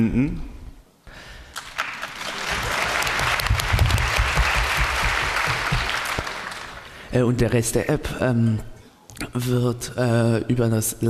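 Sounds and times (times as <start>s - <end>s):
speech: 0.0s - 0.5s, 7.1s - 11.0s
audience applause: 1.6s - 7.0s.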